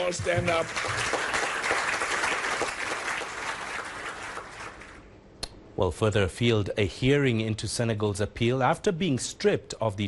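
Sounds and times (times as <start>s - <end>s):
speech: 0.0s - 1.2s, 5.8s - 10.0s
audience clapping hands: 0.0s - 5.1s.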